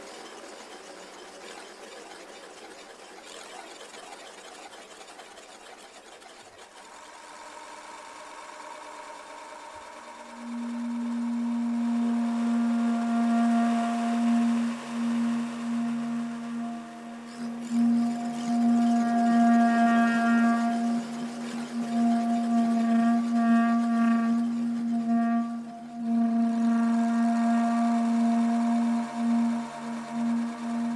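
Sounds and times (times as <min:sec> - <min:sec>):
bass clarinet: 0:10.1 - 0:30.9.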